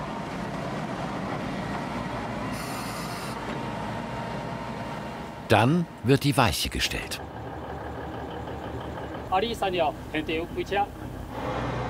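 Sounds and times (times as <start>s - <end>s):
train running into a dead-end track: 0.0s - 11.8s
speech: 5.5s - 7.4s, 9.3s - 11.8s.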